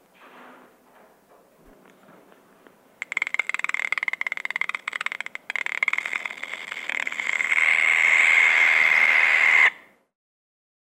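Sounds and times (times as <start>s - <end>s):
pygmy anteater from South America: 3.0s - 9.9s.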